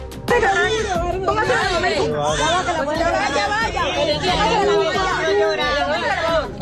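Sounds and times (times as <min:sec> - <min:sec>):
newborn baby's first cry: 0:00.3 - 0:05.8.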